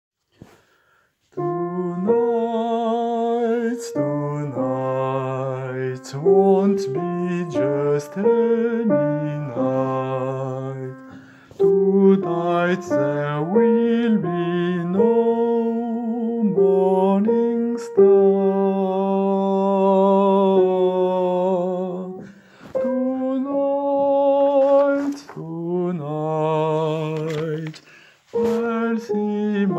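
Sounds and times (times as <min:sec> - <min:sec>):
alto singing: 0:01.4 - 0:29.7.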